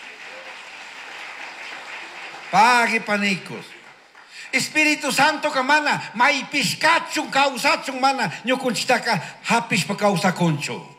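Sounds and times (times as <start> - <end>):
audience applause: 0.0 - 4.7
speech: 2.5 - 3.8, 4.5 - 10.9.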